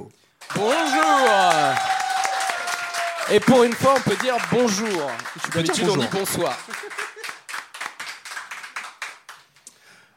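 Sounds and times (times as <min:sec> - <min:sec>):
speech: 0:00.1 - 0:01.9, 0:03.3 - 0:07.0
audience applause: 0:00.4 - 0:09.6
laughter: 0:04.1 - 0:07.5.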